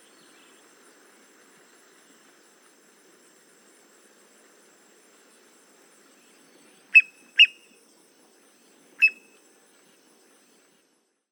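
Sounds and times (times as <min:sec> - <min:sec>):
boat-tailed grackle calling: 0:06.9 - 0:07.7, 0:09.0 - 0:09.3.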